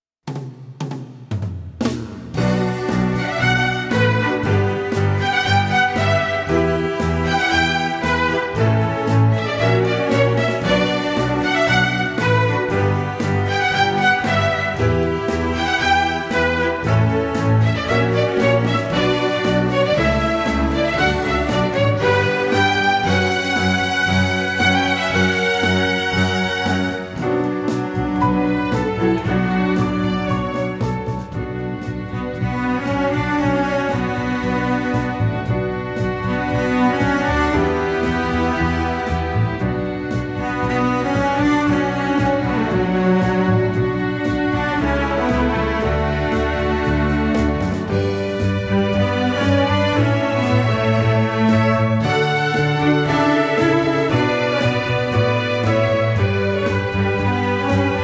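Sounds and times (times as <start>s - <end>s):
string orchestra: 1.8s - 58.0s.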